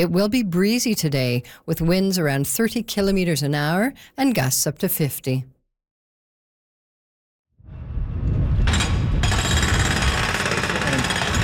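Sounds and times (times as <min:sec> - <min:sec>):
speech: 0:00.0 - 0:05.6
building noise at a construction site: 0:08.6 - 0:11.4.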